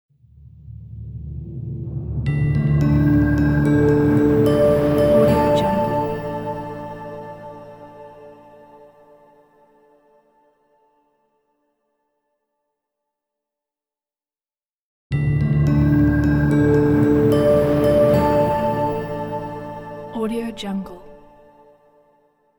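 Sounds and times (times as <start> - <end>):
mysterious logo music: 0.2 - 8.4, 15.1 - 20.1.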